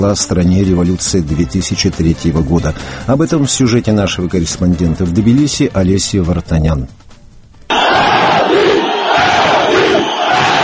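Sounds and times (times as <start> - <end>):
speech: 0.0 - 7.0
large crowd shouting a protest chant in unison: 7.7 - 10.6.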